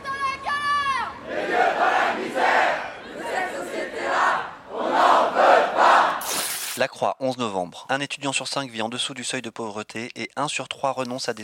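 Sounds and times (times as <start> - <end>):
protesters chanting a slogan at a demonstration in France over precarity: 1.2 - 6.2
speech: 6.8 - 11.4.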